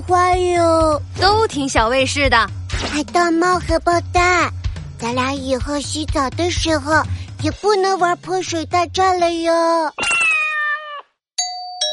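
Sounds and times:
speech: 0:00.1 - 0:10.3
doorbell chime: 0:11.4 - 0:11.9.

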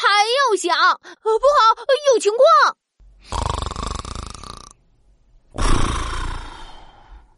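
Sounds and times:
speech: 0:00.6 - 0:03.5
loud snoring: 0:03.2 - 0:04.8, 0:05.5 - 0:07.0.

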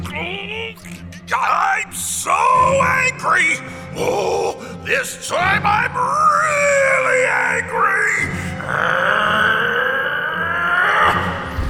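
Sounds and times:
speech: 0:00.2 - 0:09.4
monster roaring: 0:08.6 - 0:11.6.

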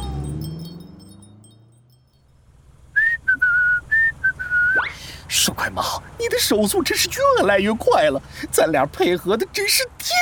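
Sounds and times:
happy whistling: 0:03.0 - 0:05.0
speech: 0:05.3 - 0:10.2.

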